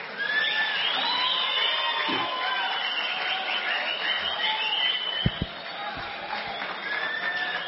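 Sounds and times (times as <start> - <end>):
crowd screaming and cheering: 0.0 - 7.6
scattered claps: 1.7 - 7.6.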